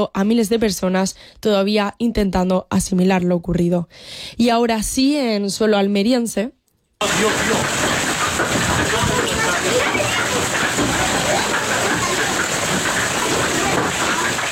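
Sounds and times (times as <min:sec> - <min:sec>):
speech: 0:00.0 - 0:08.0
hailstorm: 0:07.0 - 0:14.5.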